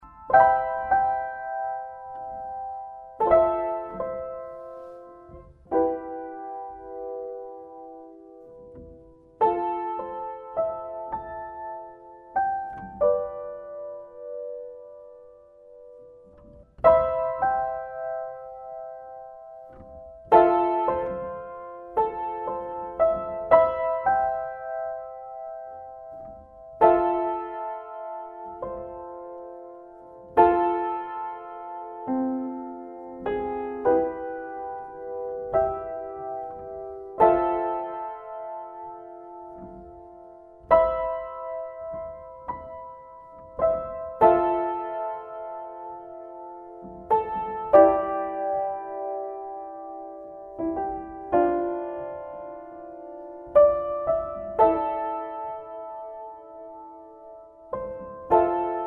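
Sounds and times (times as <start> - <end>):
Christmas piano music: 0.0 - 58.8.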